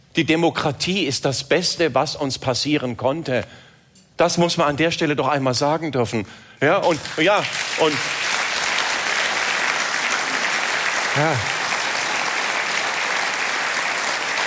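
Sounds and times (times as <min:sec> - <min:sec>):
speech: 0:00.2 - 0:08.2, 0:11.2 - 0:11.6
audience applauding: 0:06.8 - 0:14.4.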